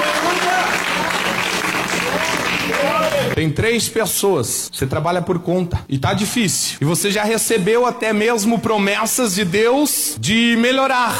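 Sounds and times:
church audience clapping: 0.0 - 3.4
speech: 3.4 - 11.1.

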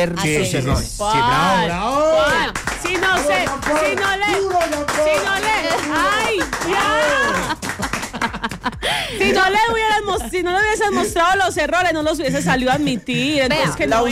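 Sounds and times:
speech: 0.0 - 7.6, 8.3 - 14.0
applause: 2.3 - 8.6
laughter: 5.2 - 14.0.

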